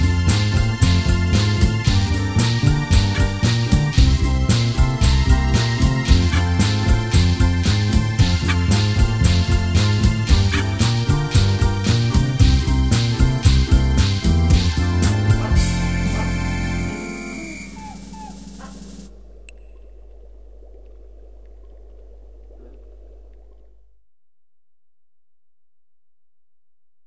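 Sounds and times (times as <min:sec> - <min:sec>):
music composition at 114 bpm: 0:00.0 - 0:18.2.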